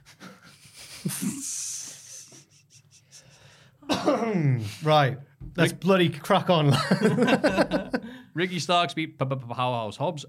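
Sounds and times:
wheezy breath: 0.0s - 3.8s
person coughing: 3.8s - 4.7s
speech: 4.0s - 10.2s
laughter: 6.7s - 8.2s.

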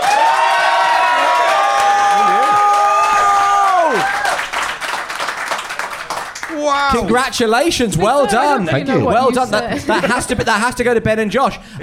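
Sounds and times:
audience applause: 0.0s - 7.2s
speech: 6.7s - 11.8s
laughter: 8.0s - 10.8s.

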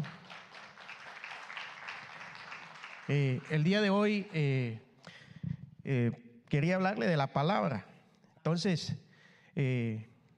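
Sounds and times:
audience applauding: 0.0s - 4.2s
speech: 3.1s - 4.9s, 5.9s - 9.0s, 9.6s - 10.1s.

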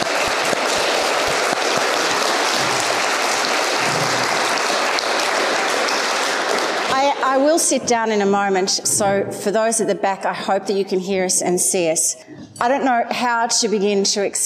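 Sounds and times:
audience applause welcoming author Jane Harper at a live event: 0.0s - 7.4s
speech: 7.3s - 14.4s.

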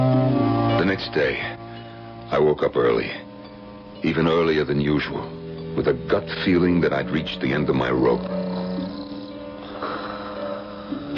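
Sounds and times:
speech: 1.0s - 1.6s, 2.3s - 3.3s, 4.0s - 8.5s
person snoring heavily: 8.2s - 11.1s.

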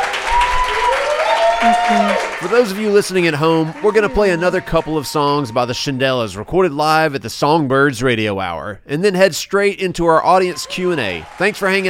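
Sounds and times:
audience applause: 0.0s - 6.0s, 10.4s - 11.8s
speech: 1.6s - 11.8s.

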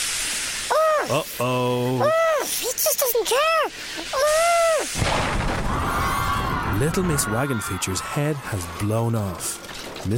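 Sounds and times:
steam hissing: 0.0s - 6.8s
speech: 1.0s - 5.3s, 6.8s - 10.1s.

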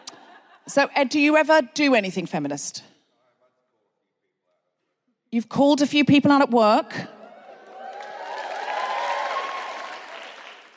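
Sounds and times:
speech: 0.7s - 2.9s, 5.3s - 7.2s
faint cheers: 7.2s - 10.3s
audience applause: 7.3s - 10.7s.

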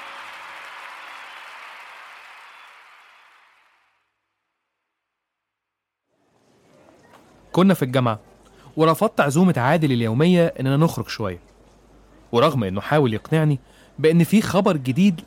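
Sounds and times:
loud applause: 0.0s - 4.1s
speech: 7.6s - 11.5s, 12.3s - 15.2s.

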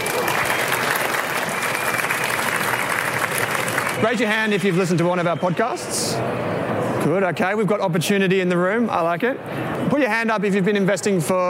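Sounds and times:
audience applause welcoming guests at a live investing event: 0.0s - 5.0s
speech: 4.0s - 11.4s.

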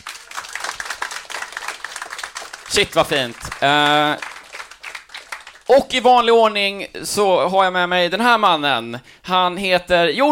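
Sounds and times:
audience applause: 0.0s - 5.8s
speech: 2.7s - 4.3s, 5.7s - 10.3s.

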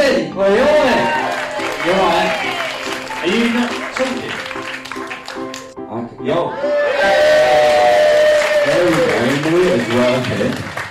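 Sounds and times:
crowd cheering: 0.8s - 5.4s, 6.6s - 10.2s
crowd clapping for a performer: 1.0s - 5.8s, 7.4s - 10.8s.

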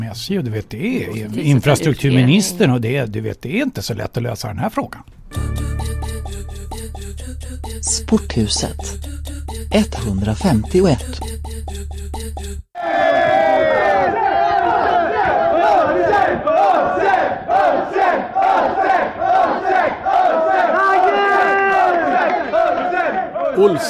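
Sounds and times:
speech: 0.1s - 5.6s, 7.6s - 11.4s, 23.6s - 23.8s
crowd chanting: 12.8s - 23.8s.

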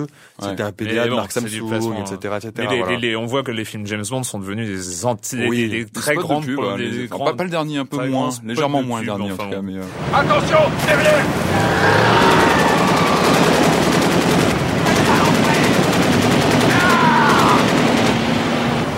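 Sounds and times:
speech: 0.0s - 12.4s
faint shouting voices: 10.4s - 13.8s, 16.6s - 17.8s
video game gunfire: 12.1s - 18.8s.

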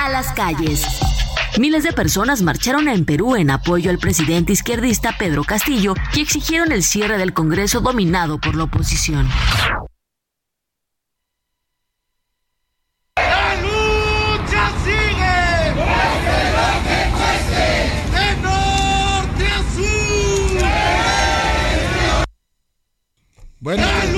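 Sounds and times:
speech: 0.2s - 9.9s
crowd of protesters shouting and yelling storming offices: 13.2s - 22.3s, 23.7s - 24.1s.

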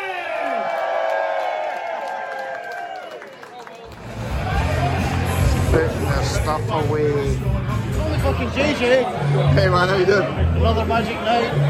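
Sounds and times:
crowd cheering: 0.0s - 6.8s
speech: 6.5s - 11.6s.

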